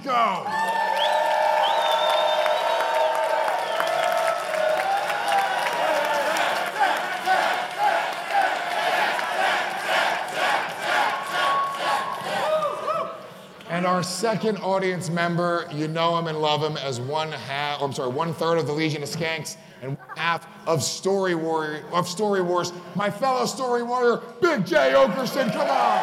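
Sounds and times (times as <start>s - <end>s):
speech: 0.0s - 0.6s, 13.9s - 26.0s
crowd whooping and cheering as a guest is introduced on stage: 0.4s - 9.9s, 10.6s - 13.4s
audience applause: 0.5s - 13.0s.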